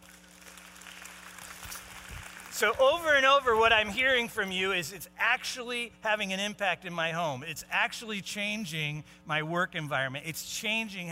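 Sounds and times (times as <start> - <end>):
audience clapping: 0.0 - 3.3
speech: 2.6 - 11.1.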